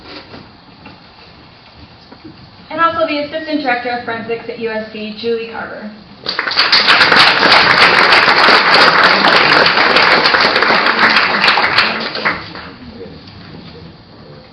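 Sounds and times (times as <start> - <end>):
speech: 2.2 - 8.0
audience applause: 6.2 - 12.8.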